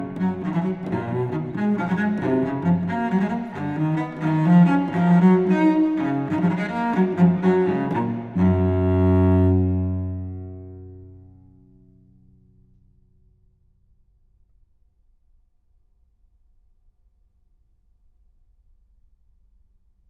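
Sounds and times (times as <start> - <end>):
solo cello: 0.0 - 12.0.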